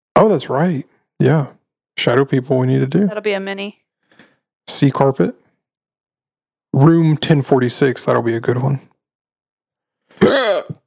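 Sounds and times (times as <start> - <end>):
speech: 0.2 - 3.8, 4.7 - 5.4, 6.8 - 8.9, 10.2 - 10.8
person hiccuping right into the microphone: 10.2 - 10.8.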